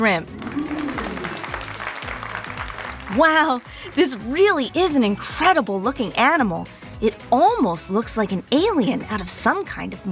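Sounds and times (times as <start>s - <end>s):
speech: 0.0s - 0.6s, 3.1s - 10.1s
crowd applauding: 0.2s - 4.0s.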